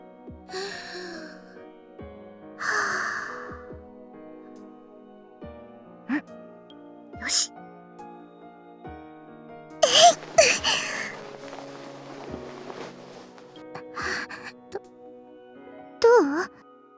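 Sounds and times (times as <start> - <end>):
soft steady music: 0.0 - 16.9
woman taking deep breaths: 0.5 - 1.6, 2.6 - 3.6, 9.8 - 11.2, 13.8 - 14.8.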